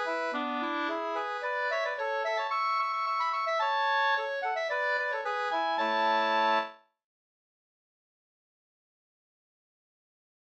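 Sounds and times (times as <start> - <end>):
quadrille tune in A major: 0.0 - 6.8.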